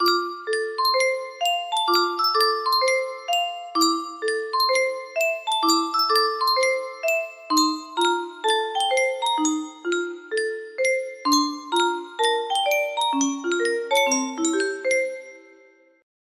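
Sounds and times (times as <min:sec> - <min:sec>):
music box melody: 0:00.0 - 0:16.0.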